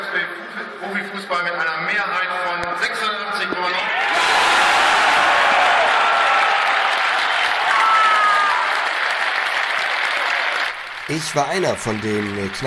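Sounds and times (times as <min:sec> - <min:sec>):
speech: 0:00.2 - 0:03.1, 0:11.2 - 0:12.6
crowd cheering and applauding: 0:03.9 - 0:12.6.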